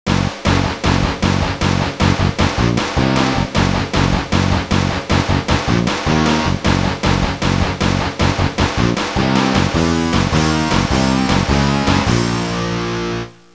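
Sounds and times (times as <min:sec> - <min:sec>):
rock music ringtone: 0:00.1 - 0:13.5.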